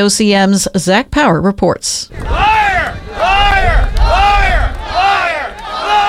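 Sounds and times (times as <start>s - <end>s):
speech: 0.0s - 2.5s
protest crowd shouting and booing in a rhythmic chant: 2.1s - 6.0s
rumble of many voices: 2.1s - 6.0s.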